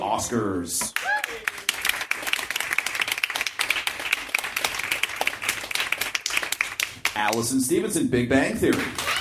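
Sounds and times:
speech: 0:00.2 - 0:01.1, 0:07.2 - 0:09.1
audience applause and clapping: 0:00.9 - 0:07.3, 0:08.7 - 0:09.1.

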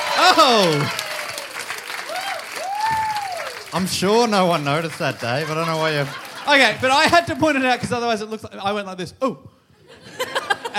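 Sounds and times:
audience applauding to welcome performers to the stage: 0:00.0 - 0:07.8
speech: 0:00.3 - 0:01.0, 0:03.7 - 0:09.5
laughter: 0:05.1 - 0:07.7, 0:09.8 - 0:10.7.

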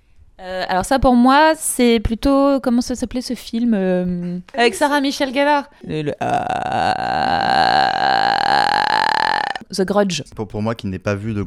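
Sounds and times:
speech: 0:00.4 - 0:08.7, 0:09.7 - 0:11.4
person imitating a frog croak: 0:05.8 - 0:09.6.

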